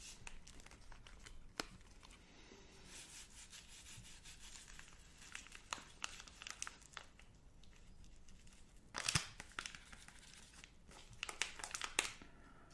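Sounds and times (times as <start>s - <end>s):
Magnum chocolate bar wrapper crinkling: 0.1s - 2.2s, 4.5s - 12.2s.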